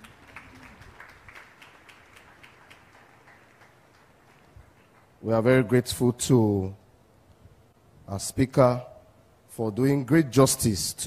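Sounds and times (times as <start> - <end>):
audience clapping: 0.0 - 5.3
speech: 5.2 - 6.8, 8.1 - 8.9, 9.6 - 11.0.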